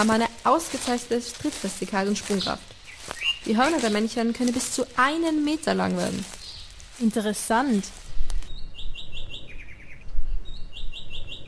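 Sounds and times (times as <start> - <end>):
speech: 0.0 - 2.8, 3.4 - 6.4, 7.0 - 8.0
coal tit calling loudly: 0.0 - 7.9.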